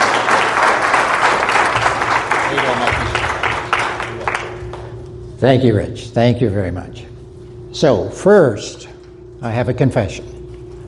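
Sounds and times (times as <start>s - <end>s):
audience applause: 0.0s - 4.9s
speech: 5.4s - 7.1s, 7.8s - 10.3s.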